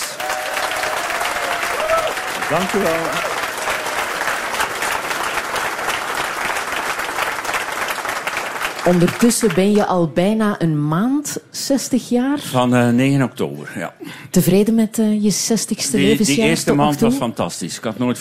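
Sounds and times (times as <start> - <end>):
warm audience applause: 0.0 - 9.8
speech: 2.5 - 3.3, 8.8 - 18.1.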